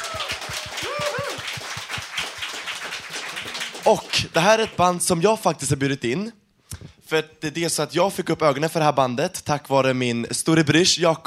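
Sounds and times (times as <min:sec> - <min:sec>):
audience applause: 0:00.0 - 0:05.0
speech: 0:03.9 - 0:06.4, 0:07.1 - 0:11.2.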